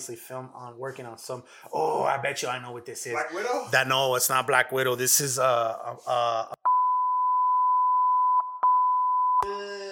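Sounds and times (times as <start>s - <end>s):
speech: 0.0s - 6.6s
censor bleep over speech: 6.6s - 9.8s.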